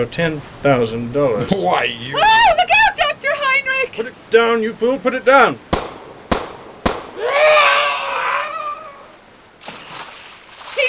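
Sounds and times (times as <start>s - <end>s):
speech: 0.0s - 2.8s, 4.0s - 5.7s
gunshots in a radio drama: 5.7s - 7.5s
long, high, wavering cry: 7.2s - 9.2s.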